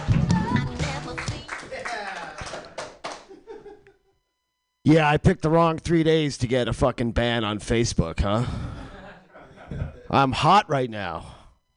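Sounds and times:
audience clapping: 0.0 - 3.3
laughter: 1.7 - 4.2, 8.3 - 10.1
speech: 4.9 - 8.7, 10.1 - 11.4.

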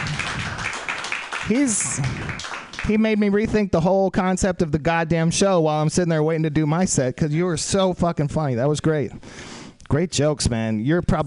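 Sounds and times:
audience applause: 0.0 - 3.0
speech: 1.5 - 11.2.

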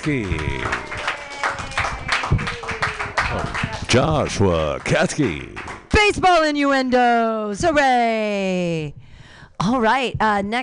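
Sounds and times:
speech: 0.0 - 0.9, 3.3 - 9.0, 9.6 - 10.6
open mic comedy audience applause after a comedian's set: 0.0 - 5.9.

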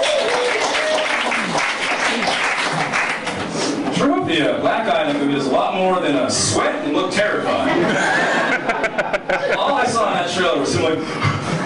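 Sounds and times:
crowd applauding: 0.0 - 3.6
speech: 4.4 - 11.6
laughter: 7.6 - 10.0, 10.9 - 11.6.

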